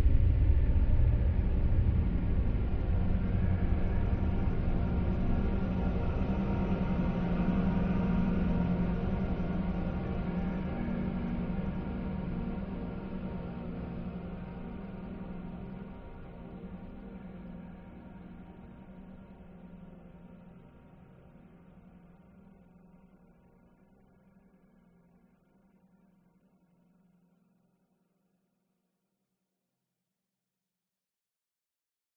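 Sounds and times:
dark depressing airy evolving horror drone: 0:00.0 - 0:20.6.

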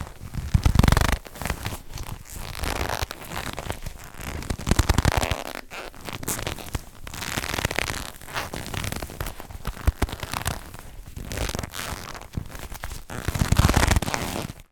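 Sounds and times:
leather wallet movements and squeaks: 0:00.6 - 0:09.3, 0:11.3 - 0:12.3, 0:13.1 - 0:14.5.

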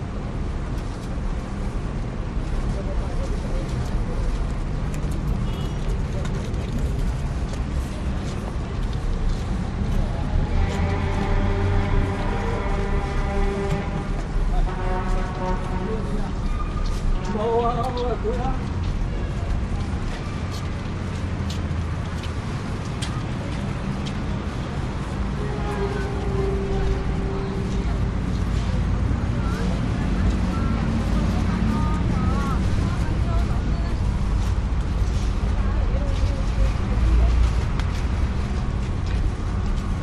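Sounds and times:
street ambience in New York Chinatown: 0:00.0 - 0:40.0.

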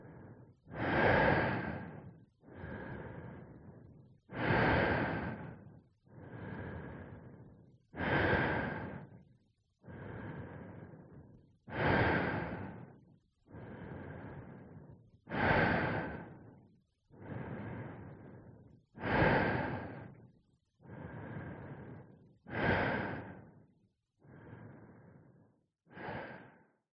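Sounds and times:
human breathing underwater or in space, intense to calm: 0:00.0 - 0:26.8.

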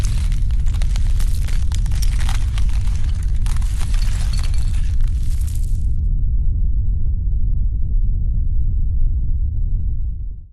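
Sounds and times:
debris falling: 0:00.0 - 0:06.0
ground cracking in an earthquake: 0:00.0 - 0:06.0
earthquake rumble: 0:00.0 - 0:10.4.

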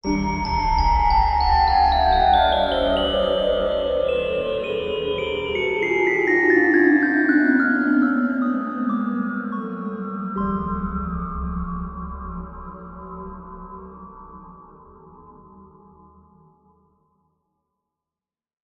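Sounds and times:
horror ghostly ominous haunted musical chime riff: 0:00.0 - 0:13.5.

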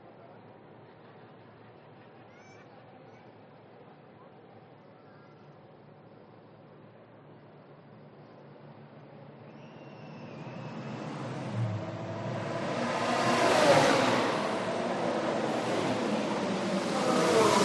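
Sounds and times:
F1 race car passing at speed on a race track: 0:09.7 - 0:17.6.

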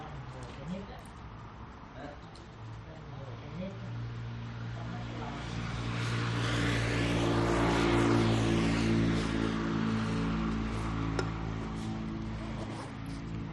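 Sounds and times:
trucks passing at gas station: 0:01.2 - 0:13.5
motorcycle driving away: 0:03.7 - 0:13.5.

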